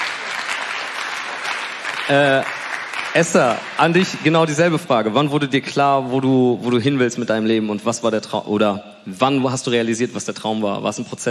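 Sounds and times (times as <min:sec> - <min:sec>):
audience applause: 0:00.0 - 0:04.7
speech: 0:02.1 - 0:11.2.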